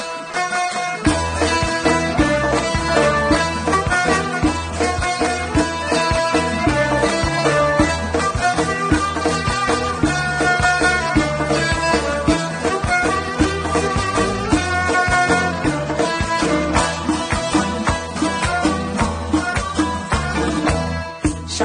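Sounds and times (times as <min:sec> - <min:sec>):
Chaharshanbeh Suri remix music: 0:00.1 - 0:21.5.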